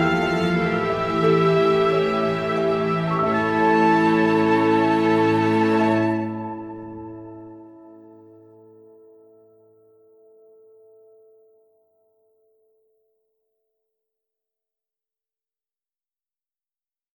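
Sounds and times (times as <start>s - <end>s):
flute music: 0.0s - 11.1s.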